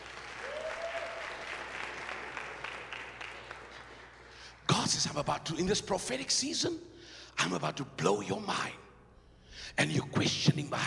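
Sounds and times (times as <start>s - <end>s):
audience clapping: 0.0s - 5.1s
speech: 4.9s - 8.8s, 9.8s - 10.8s.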